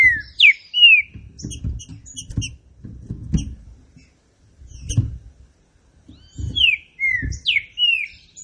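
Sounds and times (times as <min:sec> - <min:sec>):
Green-winged saltator song of bright swooping whistles: 0:00.0 - 0:01.1, 0:06.2 - 0:08.4.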